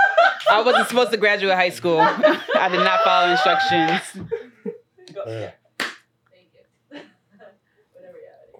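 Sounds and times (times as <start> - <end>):
laughter: 0.0 - 1.2, 1.8 - 4.8
speech: 0.5 - 4.4, 5.2 - 5.6
single loud audience clap: 5.8 - 6.1.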